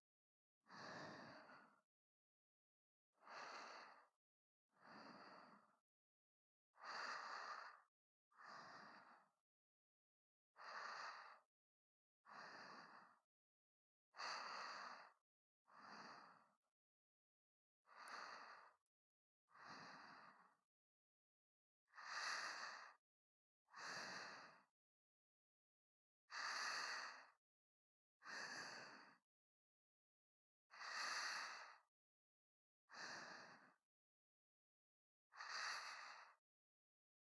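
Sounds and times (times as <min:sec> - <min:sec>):
person breathing in sleep: 0:00.7 - 0:01.8, 0:03.2 - 0:04.2, 0:04.8 - 0:05.8, 0:06.8 - 0:09.4, 0:10.6 - 0:11.5, 0:12.2 - 0:13.2, 0:14.2 - 0:16.6, 0:17.9 - 0:18.8, 0:19.5 - 0:20.6, 0:21.9 - 0:23.0, 0:23.7 - 0:24.7, 0:26.3 - 0:27.4, 0:28.2 - 0:29.2, 0:30.7 - 0:31.9, 0:32.9 - 0:33.8, 0:35.3 - 0:36.4.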